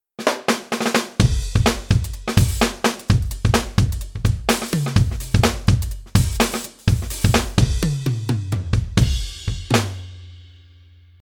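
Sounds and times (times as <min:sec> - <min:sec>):
drum and bass music: 0:01.2 - 0:10.0.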